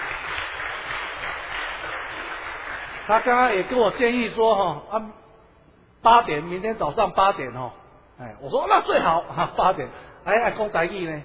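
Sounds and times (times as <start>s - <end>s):
audience applause: 0.0s - 3.7s
speech: 3.1s - 5.2s, 6.0s - 11.2s.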